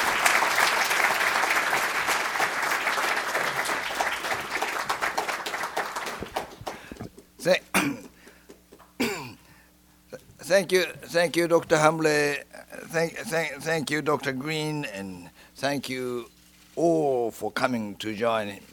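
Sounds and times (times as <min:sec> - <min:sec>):
audience applause welcoming speaker: 0:00.0 - 0:07.1
speech: 0:07.4 - 0:08.1, 0:10.5 - 0:18.7.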